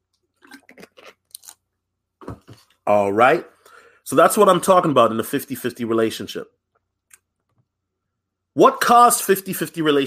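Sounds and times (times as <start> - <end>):
drinking water: 0.3 - 1.3
speech: 2.9 - 3.5, 4.1 - 6.6, 8.6 - 10.0.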